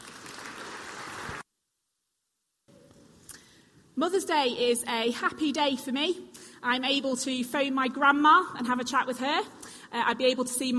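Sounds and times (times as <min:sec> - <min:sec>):
audience clapping: 0:00.0 - 0:01.4
speech: 0:04.0 - 0:10.7.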